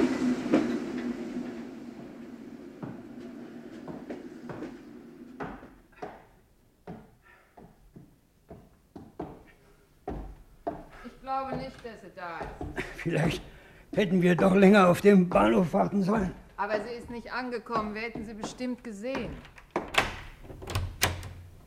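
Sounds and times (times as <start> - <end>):
train rumbling on rails: 0.0 - 5.5
train irregular clacks and knocks: 2.8 - 15.7, 16.8 - 21.6
speech: 11.3 - 19.5.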